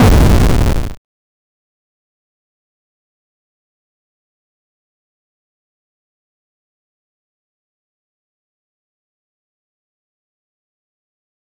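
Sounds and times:
8-bit sound effect for a 2D game: 0:00.0 - 0:01.0.

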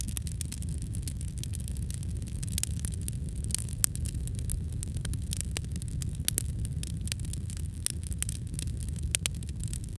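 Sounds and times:
campfire: 0:00.0 - 0:09.9.

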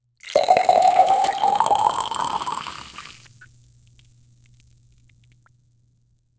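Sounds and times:
sweet sharba beverage: 0:00.2 - 0:03.4.

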